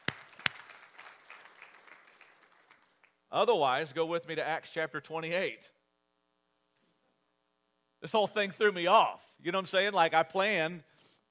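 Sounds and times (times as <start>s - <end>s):
audience round of applause: 0.0s - 3.0s
speech: 3.3s - 5.8s, 8.0s - 10.9s.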